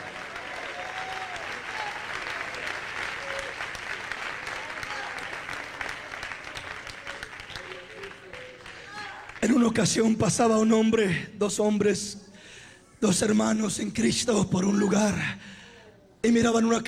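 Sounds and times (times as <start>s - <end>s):
audience clapping hands: 0.0s - 9.6s
speech: 9.6s - 12.2s, 13.0s - 15.5s, 16.2s - 16.8s.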